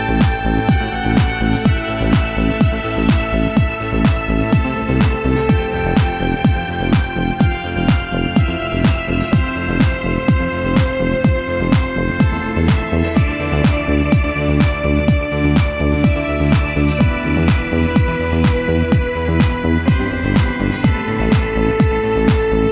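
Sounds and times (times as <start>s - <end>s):
trance waves: 0.0s - 22.7s.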